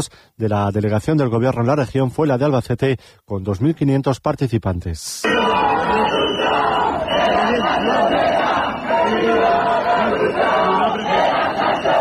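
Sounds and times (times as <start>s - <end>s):
speech: 0.0s - 6.2s
protesters chanting at a housing demonstration in Albacete: 5.2s - 11.9s.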